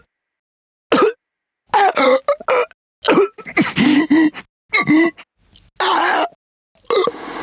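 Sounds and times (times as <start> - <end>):
person choking to death: 0.9 - 1.2, 1.8 - 7.1.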